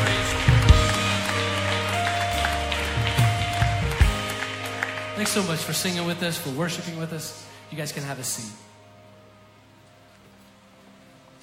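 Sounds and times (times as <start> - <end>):
worship congregation clapping along: 0.0 - 7.0
sustained instrumental tones: 0.0 - 9.8
speech: 5.2 - 8.7.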